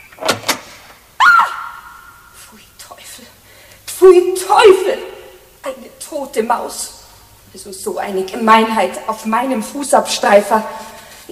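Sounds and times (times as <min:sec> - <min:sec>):
first floor door creaking open: 0:00.0 - 0:00.9
door latch clunks: 0:00.2 - 0:00.7
speech: 0:04.0 - 0:10.9.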